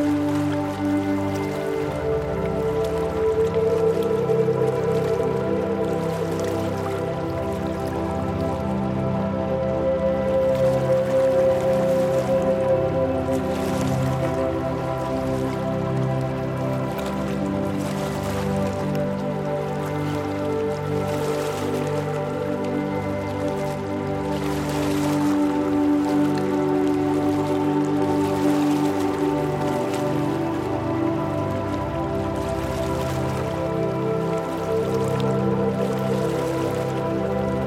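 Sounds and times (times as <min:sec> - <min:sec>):
ocean waves: 0:00.0 - 0:37.6.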